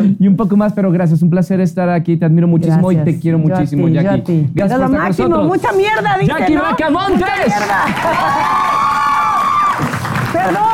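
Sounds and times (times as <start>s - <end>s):
speech: 0.0s - 8.8s, 10.4s - 10.7s
laughter: 6.3s - 8.9s
audience applause: 7.0s - 10.7s.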